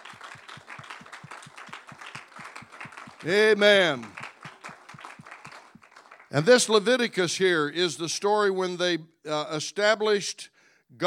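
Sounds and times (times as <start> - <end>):
audience clapping hands in praise: 0.0 - 7.0
speech: 3.2 - 4.2, 6.3 - 11.0.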